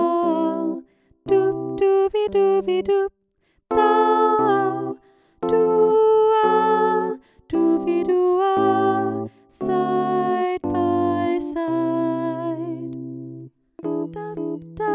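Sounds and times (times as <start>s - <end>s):
piano: 0.0s - 3.1s, 3.7s - 14.9s
soprano singing with piano: 0.0s - 13.0s, 13.8s - 14.9s.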